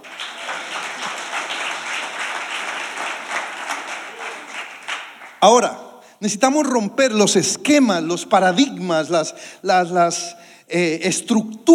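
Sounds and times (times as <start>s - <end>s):
audience applause: 0.0s - 5.5s
speech: 5.4s - 11.7s.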